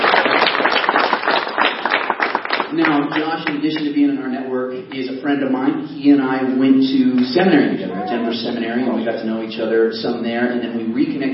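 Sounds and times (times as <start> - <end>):
audience applause: 0.0 - 3.8
speech: 2.8 - 11.3.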